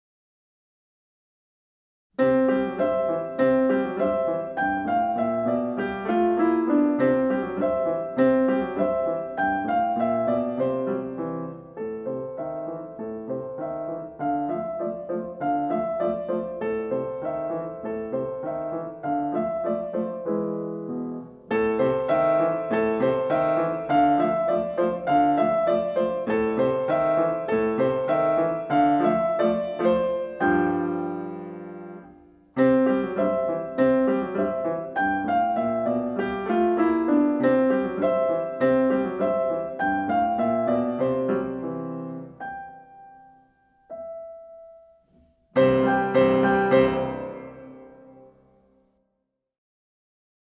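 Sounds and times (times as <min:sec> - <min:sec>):
piano: 0:02.2 - 0:49.0.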